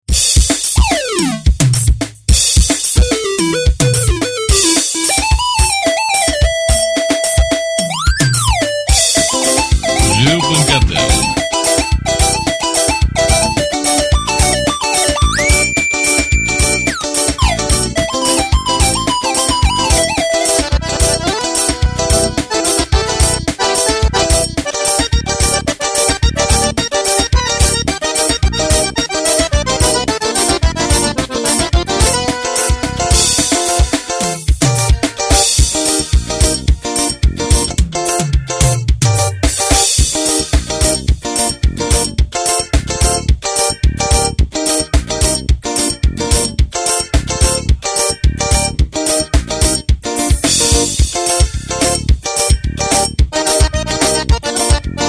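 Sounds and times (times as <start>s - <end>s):
forró music: 0.1s - 55.0s.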